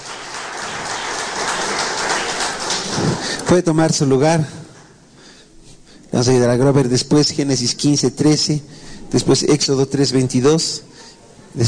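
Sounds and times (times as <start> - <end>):
audience applause: 0.0 - 3.7
speech: 3.5 - 4.6, 6.1 - 10.9.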